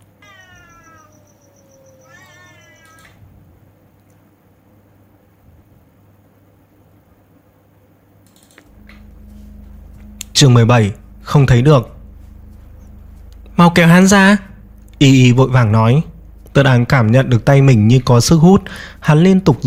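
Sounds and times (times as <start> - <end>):
cat yowling in pain: 0.2 - 3.2
speech: 10.4 - 12.0, 13.8 - 19.6.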